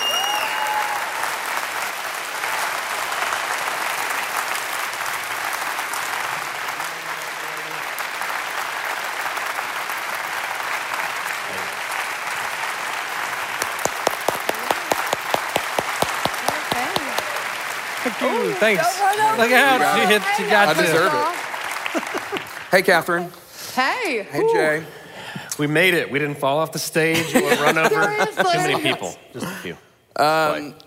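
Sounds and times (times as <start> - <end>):
audience applause: 0.0 - 23.1
speech: 18.5 - 21.4, 22.7 - 25.0, 25.6 - 30.8
laughter: 21.8 - 22.6, 27.1 - 29.6.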